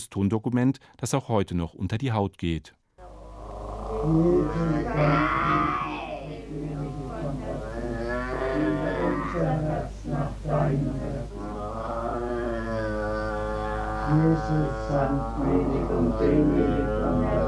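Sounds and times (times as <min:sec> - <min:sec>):
speech: 0:00.0 - 0:02.8, 0:04.0 - 0:06.7, 0:09.4 - 0:11.5, 0:14.1 - 0:17.4
young woman's inarticulate growling on tape: 0:03.0 - 0:17.4
young woman scolding on tape: 0:04.0 - 0:06.4.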